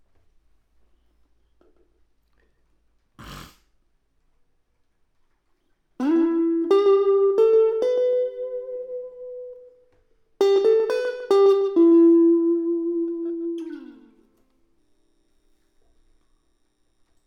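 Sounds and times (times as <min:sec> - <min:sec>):
electric guitar: 0:06.0 - 0:14.8.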